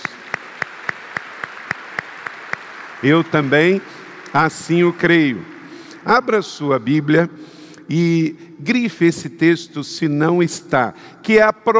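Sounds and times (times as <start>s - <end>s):
audience clapping in unison in a steady quick rhythm: 0.0s - 7.1s
speech: 3.0s - 11.7s.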